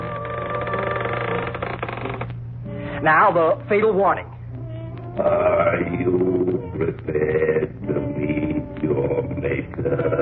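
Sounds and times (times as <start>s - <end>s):
creaking door sound effect: 0.0s - 2.4s
speech: 3.0s - 4.3s, 5.2s - 10.1s.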